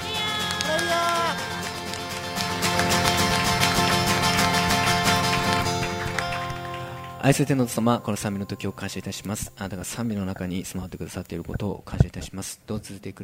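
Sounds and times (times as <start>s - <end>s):
audience clapping: 0.0s - 8.5s
sustained keyboard chords with held melodic line: 0.0s - 10.3s
speech: 7.2s - 13.2s.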